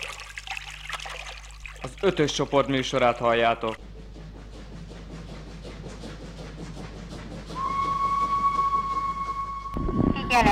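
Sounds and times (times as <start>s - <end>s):
speech: 1.8s - 3.9s
passenger train whistle arriving at Velence station: 7.5s - 10.5s.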